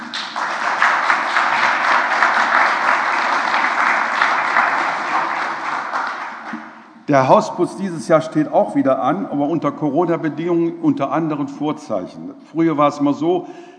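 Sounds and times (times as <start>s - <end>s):
audience applause: 0.0s - 6.8s
speech: 7.1s - 13.7s.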